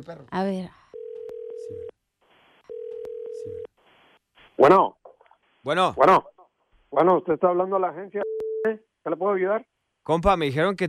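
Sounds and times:
speech: 0.0s - 0.8s, 1.7s - 2.0s, 3.4s - 3.7s, 4.6s - 5.0s, 5.6s - 10.8s
phone line ringback tone: 0.9s - 1.9s, 2.7s - 3.7s.

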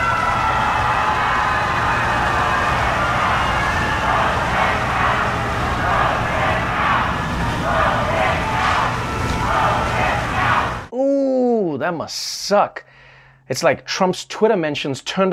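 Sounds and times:
crowd booing: 0.0s - 10.9s
speech: 11.9s - 12.9s, 13.5s - 15.3s.

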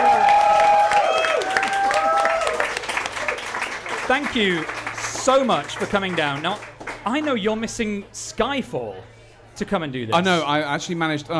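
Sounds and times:
high whoops and cheers: 0.0s - 3.4s
audience round of applause: 0.0s - 7.4s
speech: 4.1s - 11.3s.

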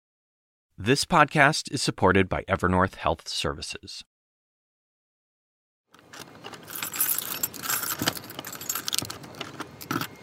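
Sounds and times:
speech: 0.8s - 4.1s
keys unlocking apartment door locks: 6.0s - 10.2s.

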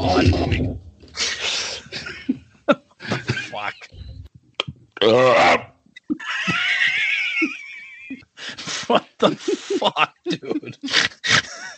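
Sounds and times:
burp: 0.0s - 0.8s, 4.6s - 5.8s
speech: 0.2s - 0.9s, 5.0s - 5.6s
laughter: 1.2s - 3.9s, 6.2s - 11.7s.

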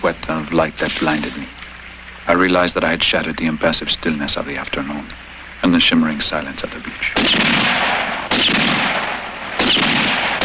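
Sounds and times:
speech: 0.0s - 1.6s, 2.3s - 8.9s
gunshots: 7.2s - 10.4s.

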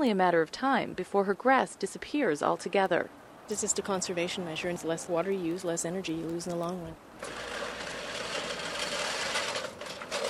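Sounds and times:
speech: 0.0s - 7.6s
push lawn mower cutting grass: 7.2s - 10.2s.

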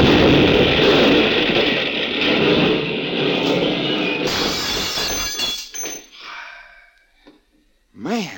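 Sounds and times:
car explosion: 0.0s - 5.8s.

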